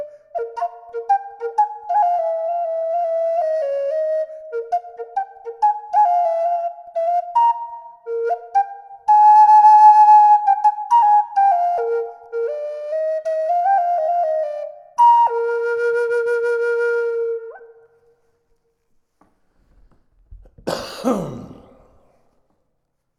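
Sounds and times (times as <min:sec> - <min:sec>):
flute with reverb: 0:00.0 - 0:18.1.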